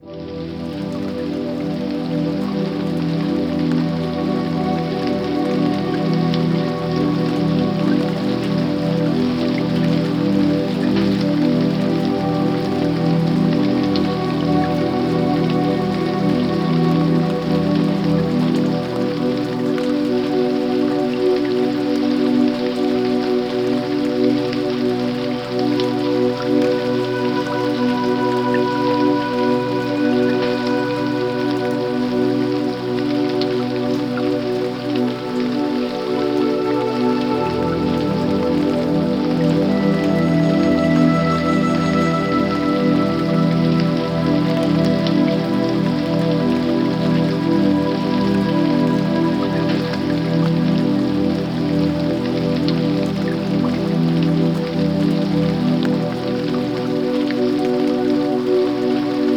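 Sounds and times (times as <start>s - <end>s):
light rain: 0.0s - 59.3s.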